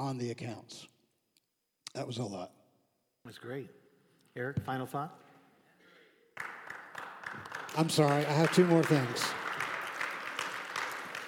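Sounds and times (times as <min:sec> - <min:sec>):
speech: 0:00.0 - 0:00.9, 0:02.0 - 0:02.6, 0:03.2 - 0:03.8, 0:04.4 - 0:05.2, 0:07.7 - 0:09.4
audience clapping: 0:06.4 - 0:11.2.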